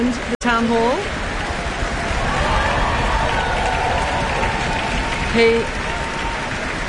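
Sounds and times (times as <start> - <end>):
speech: 0.0 - 1.2, 5.3 - 5.8
concert hall audience applause: 1.8 - 6.8.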